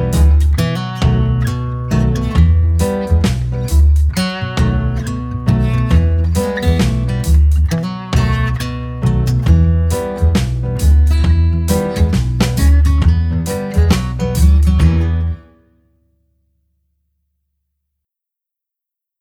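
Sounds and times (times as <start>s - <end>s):
instrumental children's song: 0.0s - 15.4s.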